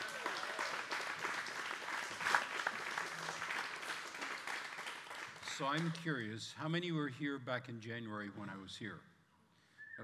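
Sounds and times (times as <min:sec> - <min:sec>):
audience applause: 0:00.0 - 0:05.5
speech: 0:05.6 - 0:09.1.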